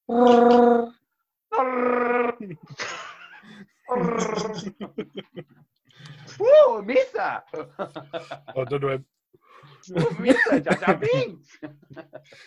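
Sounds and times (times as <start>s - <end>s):
speech: 0.1s - 0.8s, 1.8s - 5.4s, 6.7s - 9.2s, 9.8s - 12.4s
voice imitating Chewbacca's roar from Star Wars: 0.1s - 2.5s, 3.9s - 4.6s
laughter: 2.5s - 5.6s, 7.7s - 9.0s, 10.0s - 12.4s.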